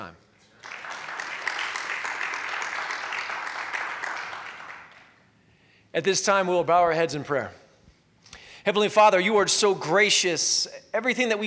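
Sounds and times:
audience applause: 0:00.6 - 0:05.1
speech: 0:06.0 - 0:07.6, 0:08.7 - 0:11.4.

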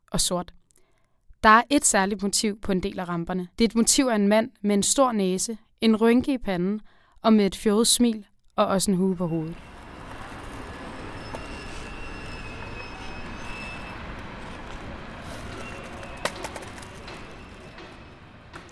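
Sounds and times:
speech: 0:00.1 - 0:00.6, 0:01.4 - 0:09.7
trains rushing past under a bridge: 0:09.5 - 0:18.7.

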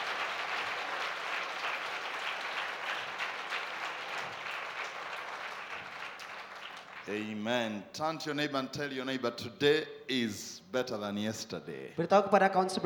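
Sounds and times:
audience clapping: 0:00.0 - 0:07.6
speech: 0:07.1 - 0:12.8.

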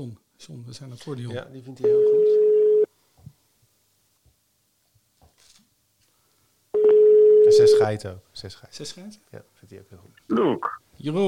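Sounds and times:
speech: 0:00.0 - 0:02.6, 0:07.8 - 0:11.2
telephone ringback tone: 0:01.8 - 0:02.9, 0:06.8 - 0:07.8.

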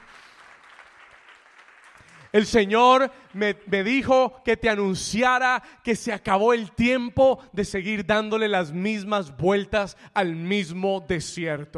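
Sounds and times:
audience applause: 0:00.0 - 0:04.0
speech: 0:02.3 - 0:11.7.

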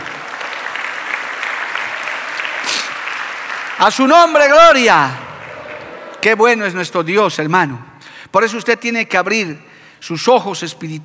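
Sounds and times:
audience applause: 0:00.0 - 0:06.8
speech: 0:03.8 - 0:05.2, 0:06.2 - 0:11.0.

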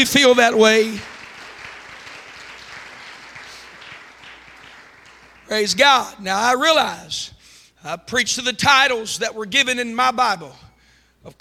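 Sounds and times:
speech: 0:00.0 - 0:01.1, 0:05.5 - 0:10.6
audience clapping hands in praise: 0:00.0 - 0:06.1.

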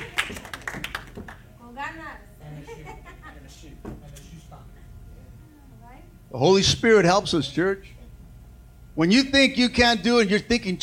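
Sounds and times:
audience hand claps: 0:00.0 - 0:01.5
laughter: 0:02.4 - 0:03.8
speech: 0:06.3 - 0:08.0, 0:09.0 - 0:10.8.

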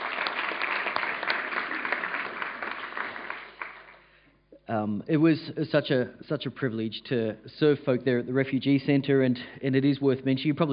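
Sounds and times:
round of applause: 0:00.0 - 0:04.1
speech: 0:04.7 - 0:10.7.

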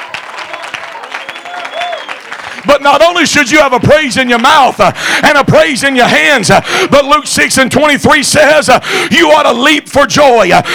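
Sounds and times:
audience clapping hands: 0:00.0 - 0:06.4
speech: 0:02.8 - 0:10.7.

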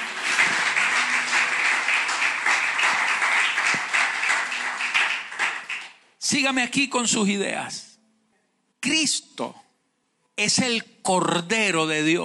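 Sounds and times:
audience applause: 0:00.0 - 0:06.0
speech: 0:06.3 - 0:07.9, 0:08.8 - 0:09.6, 0:10.4 - 0:12.2.

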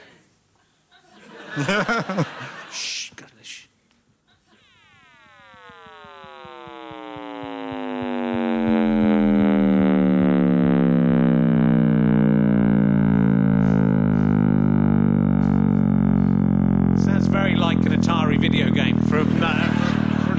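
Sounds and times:
laughter: 0:00.9 - 0:03.0, 0:19.2 - 0:20.3
speech: 0:01.6 - 0:03.3
Big Bang sonification, frequency-boosted deep rumble: 0:04.6 - 0:20.3.

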